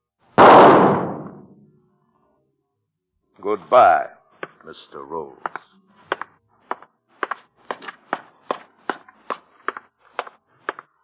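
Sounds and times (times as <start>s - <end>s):
single gunshot: 0.4s - 1.6s
speech: 3.4s - 5.7s.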